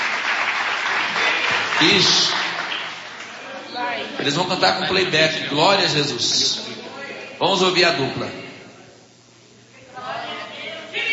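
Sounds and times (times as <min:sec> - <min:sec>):
crowd applauding: 0:00.0 - 0:03.5
speech: 0:01.8 - 0:02.4, 0:04.2 - 0:06.8, 0:07.4 - 0:08.4.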